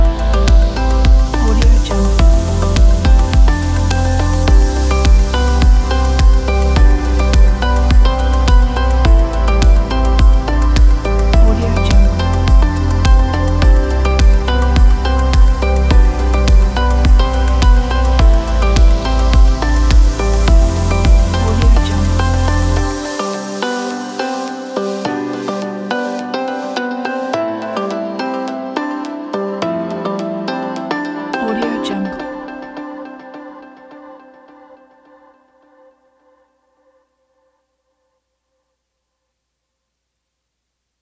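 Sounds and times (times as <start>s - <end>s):
technology beat: 0.0s - 26.3s.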